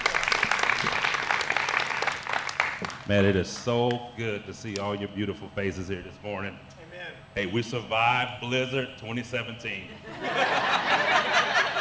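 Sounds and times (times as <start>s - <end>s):
audience clapping: 0.0s - 4.0s
speech: 3.1s - 11.2s
laughter: 9.8s - 11.8s.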